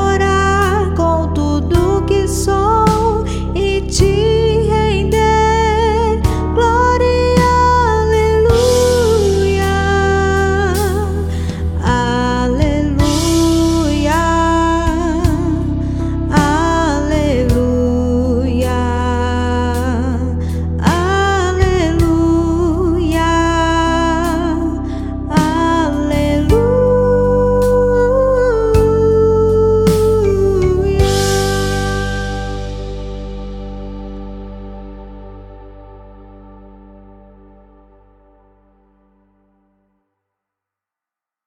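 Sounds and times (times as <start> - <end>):
woman singing over playback backing track: 0.0 - 32.8.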